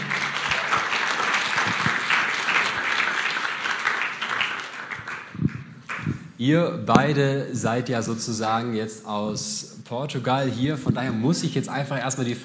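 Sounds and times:
crowd applause welcoming guests on stage: 0.0 - 6.1
speech: 6.4 - 12.4.

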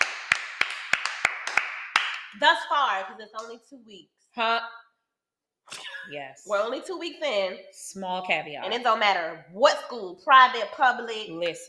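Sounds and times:
clapping: 0.0 - 2.4
speech: 2.3 - 4.8, 5.7 - 11.6.

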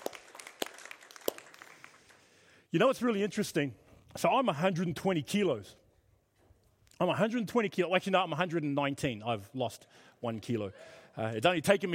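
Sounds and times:
audience applause: 0.0 - 2.3
speech: 2.7 - 5.8, 7.0 - 11.9.

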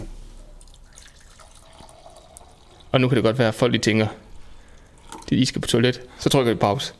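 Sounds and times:
coffee pouring into a cup: 0.5 - 3.4, 4.6 - 5.6
speech: 2.9 - 4.2, 5.3 - 6.9.

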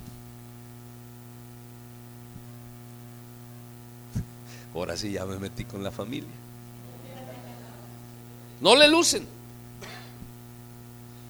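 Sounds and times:
speech: 4.7 - 6.5, 8.6 - 9.4
laughter: 6.8 - 8.9
person coughing: 9.8 - 10.3.

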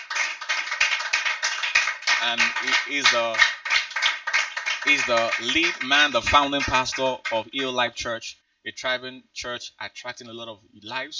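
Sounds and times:
crowd applause: 0.0 - 7.4
speech: 2.2 - 3.6, 4.8 - 11.1.

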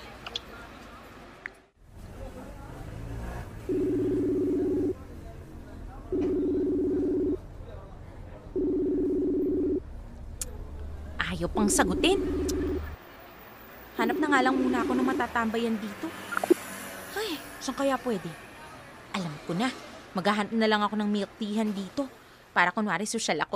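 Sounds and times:
low noise: 0.0 - 23.5
telephone ringback tones: 3.7 - 5.0, 6.1 - 7.4, 8.6 - 9.8, 14.0 - 15.3
speech: 11.6 - 12.5, 14.4 - 16.5, 17.3 - 18.5, 19.2 - 23.5.

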